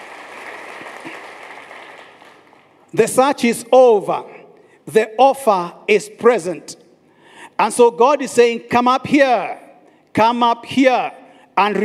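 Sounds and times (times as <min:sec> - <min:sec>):
congregation hand clapping during a church service: 0:00.0 - 0:02.9
speech: 0:02.9 - 0:06.8, 0:07.6 - 0:11.8.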